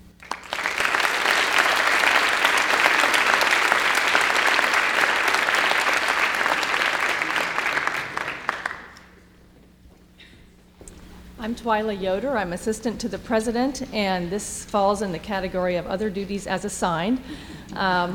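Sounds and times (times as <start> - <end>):
audience applause for student representatives: 0.2 - 9.2
speech: 11.4 - 18.1.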